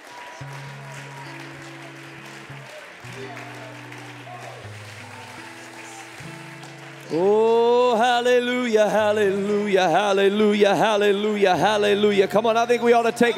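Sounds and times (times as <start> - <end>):
audience clapping: 0.0 - 13.3
indistinct voices: 0.0 - 13.3
speech: 3.2 - 3.5, 7.1 - 7.4, 8.2 - 13.3.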